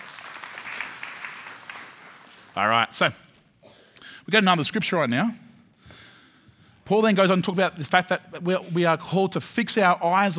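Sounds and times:
crowd applauding: 0.0s - 2.6s
speech: 2.6s - 3.2s, 4.3s - 5.4s, 6.9s - 10.3s.

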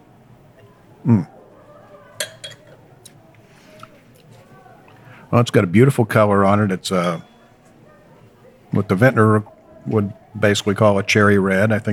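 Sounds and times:
speech: 1.0s - 1.4s, 5.4s - 7.3s, 8.8s - 11.9s
wine glass being handled and clinking: 2.2s - 2.8s, 6.9s - 7.6s.

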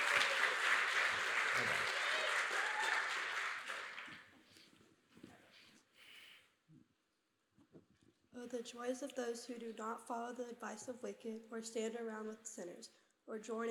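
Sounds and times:
audience clapping hands: 0.0s - 4.3s
soft voices: 1.4s - 3.0s
speech: 8.4s - 13.6s.

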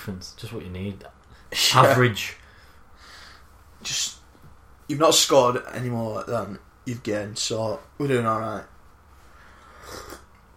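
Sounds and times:
speech: 0.0s - 2.4s, 3.8s - 4.1s, 4.9s - 8.7s
loud sip of tea: 9.7s - 10.4s.

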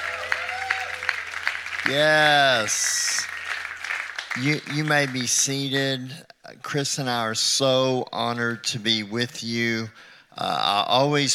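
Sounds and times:
church congregation clapping during a morning service: 0.0s - 5.8s
speech: 1.8s - 3.3s, 4.4s - 11.3s.

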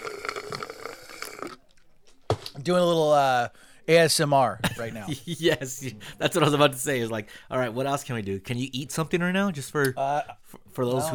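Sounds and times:
person slurping a drink: 0.0s - 1.7s
speech: 2.6s - 11.1s.

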